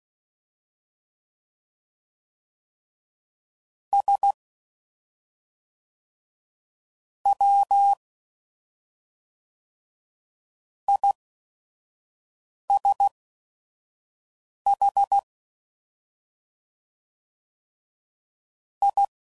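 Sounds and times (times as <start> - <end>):
CW Morse code groups at 5 WPM: 4.0 - 4.4, 7.3 - 8.0, 10.9 - 11.2, 14.7 - 15.2, 18.8 - 19.1.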